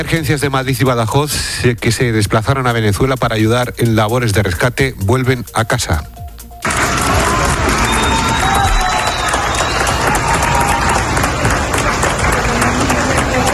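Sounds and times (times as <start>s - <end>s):
speech: 0.0s - 6.2s
applause welcoming emergency teams at Valencia airport in Carabobo, Venezuela: 6.6s - 13.5s.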